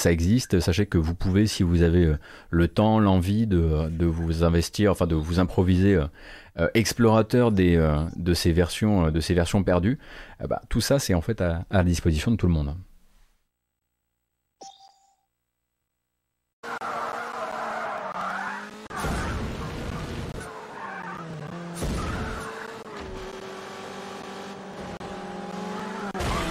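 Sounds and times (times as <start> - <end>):
speech: 0.0 - 12.9
car engines from a racing video game demo: 16.6 - 26.4
tire skids from a racing video game demo: 16.6 - 26.4.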